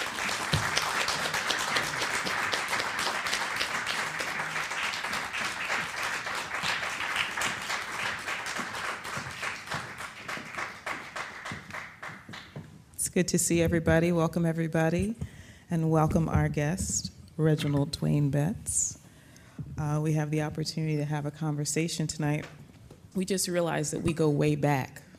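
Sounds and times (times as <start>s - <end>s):
audience applause welcoming guests at a live evening event in Philadelphia: 0.0s - 12.6s
speech: 13.2s - 18.8s, 19.8s - 25.1s.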